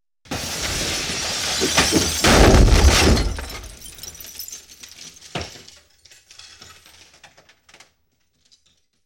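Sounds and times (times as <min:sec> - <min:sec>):
explosion: 0:00.3 - 0:04.2.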